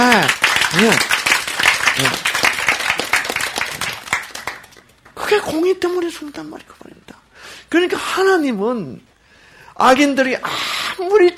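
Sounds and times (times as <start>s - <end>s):
audience clapping: 0.0s - 5.4s
speech: 0.2s - 1.1s, 5.5s - 9.1s, 9.8s - 11.3s.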